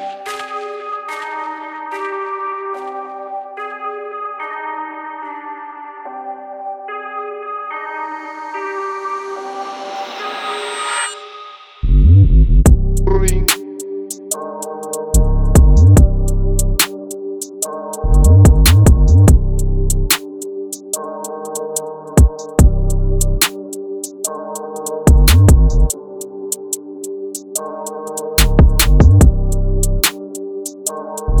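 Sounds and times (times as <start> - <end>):
hard drill hip hop beat: 12.0 - 31.3.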